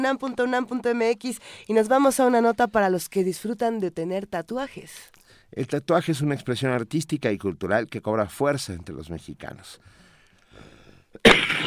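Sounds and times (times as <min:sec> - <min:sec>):
speech: 0:00.0 - 0:11.6
harsh cough: 0:11.2 - 0:11.6.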